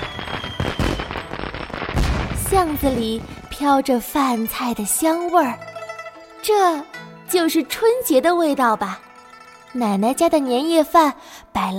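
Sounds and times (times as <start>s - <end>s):
firecrackers and fireworks going off: 0.0s - 4.0s
speech: 2.5s - 5.7s, 6.4s - 9.0s, 9.7s - 11.7s.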